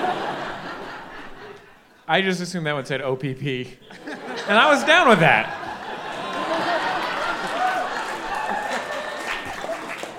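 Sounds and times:
laughter: 0.0 - 1.8, 3.8 - 10.1
speech: 2.1 - 5.6
crowd clapping: 4.5 - 10.1.

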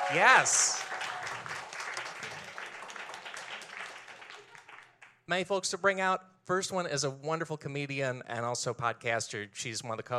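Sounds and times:
audience applause: 0.0 - 5.1
speech: 0.1 - 0.9, 5.3 - 10.1.

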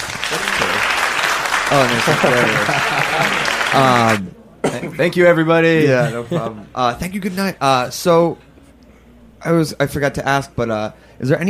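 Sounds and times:
audience applause: 0.0 - 4.2
voices and cheering: 0.0 - 4.3
laughter: 1.6 - 4.2, 5.8 - 6.8
speech: 1.7 - 8.5, 9.4 - 11.4.

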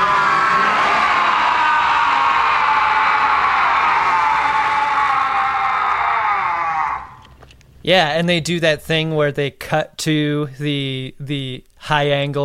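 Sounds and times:
Klingons growling and screaming: 0.0 - 7.4
speech: 7.9 - 12.4.

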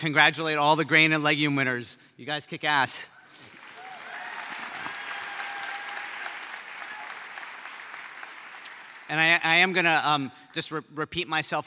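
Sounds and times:
speech: 0.0 - 3.2, 9.1 - 11.6
audience applause at the Good Food Awards ceremony in San Francisco: 3.5 - 9.2.

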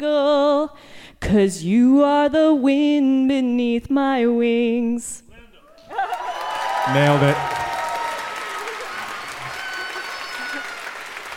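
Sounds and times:
speech: 0.0 - 5.2, 6.9 - 7.5
audience applause: 5.8 - 11.3.

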